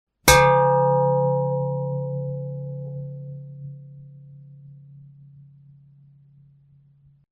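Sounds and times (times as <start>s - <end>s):
metal hit: 0.3s - 3.3s.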